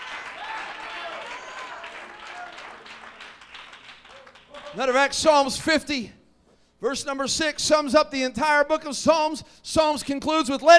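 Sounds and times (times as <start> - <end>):
audience clapping: 0.0 - 5.8
speech: 4.7 - 6.2, 6.8 - 10.7.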